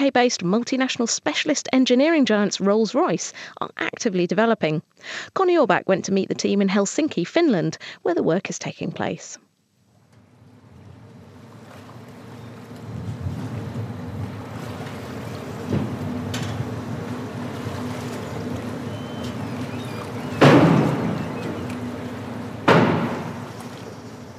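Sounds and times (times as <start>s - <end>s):
speech: 0.0s - 9.4s
wind and water noise: 9.9s - 24.3s
ferry engine rumble pulling into Helsinki harbour: 10.2s - 24.3s
rushing bursts: 11.0s - 24.2s.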